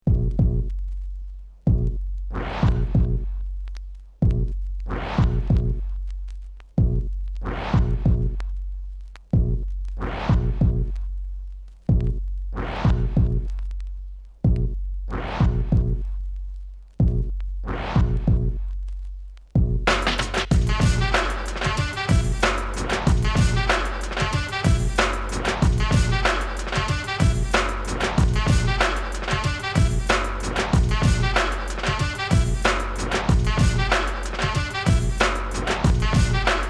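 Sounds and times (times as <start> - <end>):
music beat: 0.0 - 36.6.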